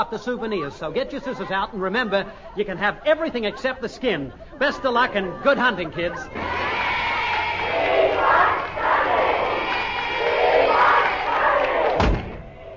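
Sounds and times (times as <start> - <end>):
speech: 0.0 - 6.6
laughter: 0.0 - 9.9
large crowd of fans roaring and cheering outside: 5.1 - 12.7
sharp thump: 11.9 - 12.5.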